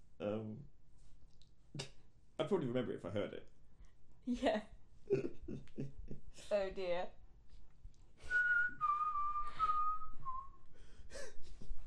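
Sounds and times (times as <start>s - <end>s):
speech: 2.4s - 3.6s, 4.2s - 7.2s
person whistling a short tune: 8.2s - 10.7s.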